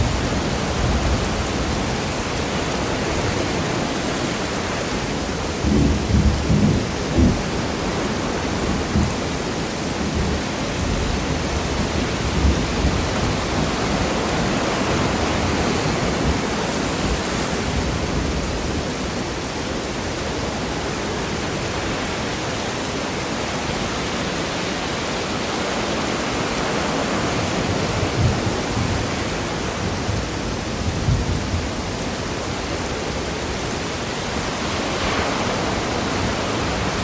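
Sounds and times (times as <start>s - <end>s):
stormy sea roaring: 0.0s - 37.0s.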